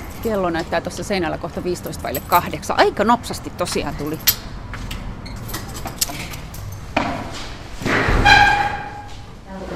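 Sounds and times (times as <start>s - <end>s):
speech: 0.2s - 4.5s
bicycle pushed through storage shed door: 5.2s - 9.3s.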